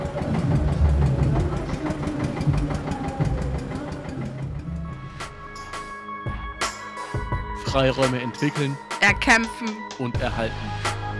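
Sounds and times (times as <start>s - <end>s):
tractor diesel engine chugging as it starts moving in Nuremberg, Germany: 0.0s - 5.8s
speech: 7.7s - 11.0s.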